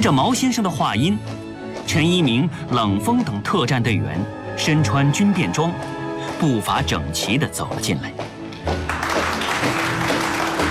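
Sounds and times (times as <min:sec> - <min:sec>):
speech: 0:00.0 - 0:08.8
applause in a hall welcoming returning heroes: 0:08.8 - 0:10.6.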